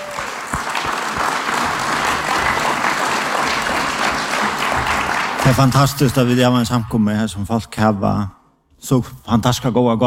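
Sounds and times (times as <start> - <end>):
audience applause: 0.0 - 6.2
speech: 5.5 - 10.0.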